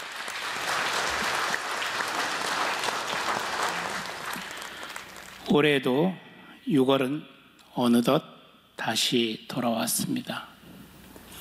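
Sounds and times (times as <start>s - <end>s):
audience applause welcoming a speaker: 0.0s - 5.4s
speech: 5.5s - 10.5s.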